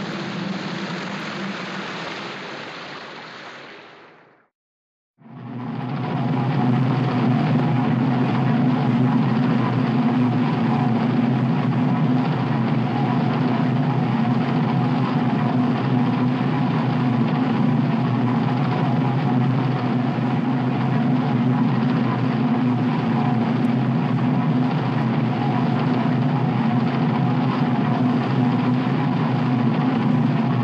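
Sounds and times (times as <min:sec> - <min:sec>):
submarine engine starting: 0:00.0 - 0:03.0, 0:05.2 - 0:30.6.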